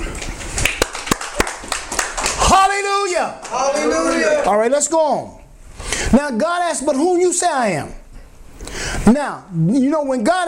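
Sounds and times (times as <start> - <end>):
church congregation clapping: 0.2 - 2.6
speech: 2.8 - 5.4, 6.0 - 8.0, 9.0 - 10.4.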